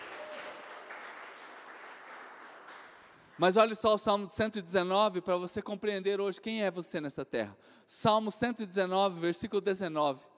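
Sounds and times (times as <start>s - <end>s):
audience applause: 0.0s - 3.4s
speech: 3.4s - 10.3s.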